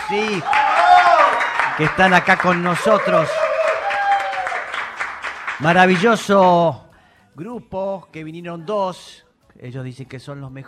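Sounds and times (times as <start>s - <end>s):
loud audience applause: 0.0s - 6.3s
speech: 0.1s - 3.4s, 5.6s - 6.8s, 7.4s - 10.6s.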